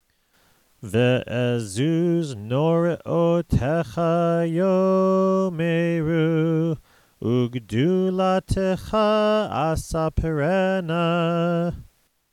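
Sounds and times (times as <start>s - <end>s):
prayer chanting: 0.8s - 11.9s.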